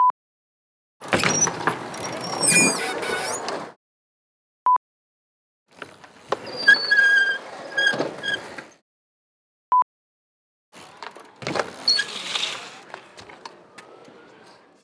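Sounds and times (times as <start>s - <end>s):
outdoor vehicle brakes: 1.0s - 3.7s, 5.8s - 8.8s, 10.8s - 14.8s.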